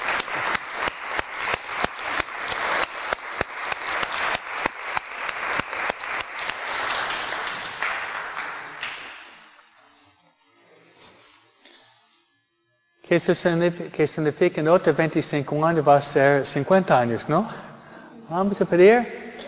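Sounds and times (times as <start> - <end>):
audience applause: 0.0 - 9.6
speech: 13.1 - 17.6, 18.3 - 19.2.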